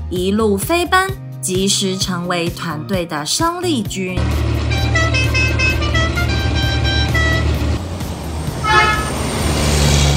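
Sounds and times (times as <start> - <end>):
speech: 0.1 - 4.6
concrete mixer truck engine rumble: 3.8 - 10.1
concrete mixer truck horn honking: 4.3 - 7.8, 8.6 - 9.4.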